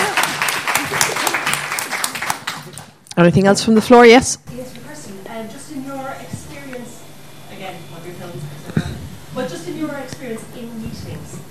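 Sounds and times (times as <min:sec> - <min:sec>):
crowd clapping: 0:00.0 - 0:03.0
speech: 0:03.2 - 0:04.5.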